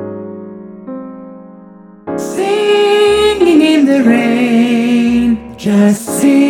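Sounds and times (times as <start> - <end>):
soprano singing: 2.2 - 6.4.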